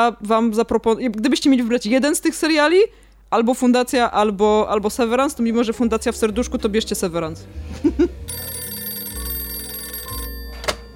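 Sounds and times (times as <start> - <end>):
speech: 0.0 - 8.4
telephone bell ringing: 8.3 - 10.9.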